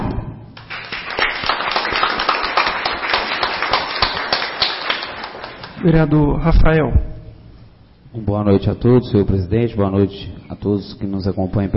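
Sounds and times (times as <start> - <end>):
round of applause: 0.6 - 5.8
speech: 5.8 - 7.2, 8.2 - 11.7.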